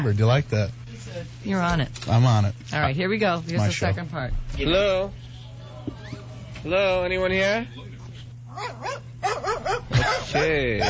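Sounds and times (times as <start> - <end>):
speech: 0.0 - 7.9, 8.6 - 10.8
dog barking and yipping: 8.5 - 10.8.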